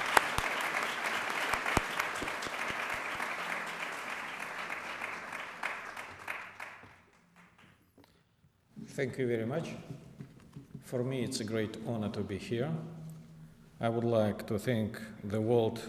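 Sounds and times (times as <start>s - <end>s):
audience applause welcoming a speaker at a World Affairs Council evening in San Francisco: 0.0s - 7.7s
speech: 9.0s - 10.0s, 10.9s - 13.0s, 13.8s - 15.8s.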